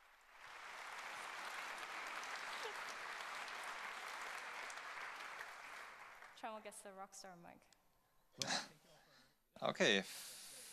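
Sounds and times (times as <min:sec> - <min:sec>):
audience applause: 0:00.0 - 0:06.5
speech: 0:06.4 - 0:07.8, 0:08.4 - 0:08.8, 0:09.6 - 0:10.3.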